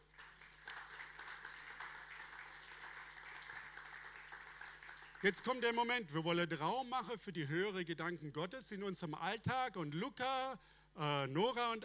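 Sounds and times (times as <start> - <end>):
audience applause: 0.0 - 5.4
speech: 5.2 - 11.8.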